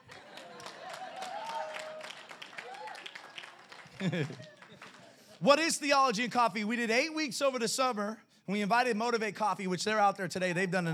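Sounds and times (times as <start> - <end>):
audience clapping: 0.0 - 5.4
laughter: 0.0 - 5.4
speech: 4.0 - 4.6, 5.4 - 10.9.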